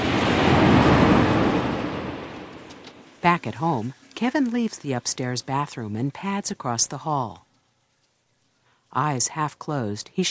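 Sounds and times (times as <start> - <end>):
American Jet airliner lifting off the runway: 0.0 - 2.8
speech: 3.2 - 7.4, 8.9 - 10.3.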